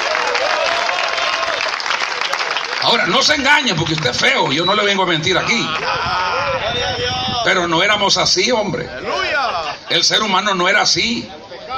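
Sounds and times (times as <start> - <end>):
audience applause: 0.0 - 4.6
speech: 2.9 - 11.4
laughter: 5.0 - 7.2, 8.9 - 10.1.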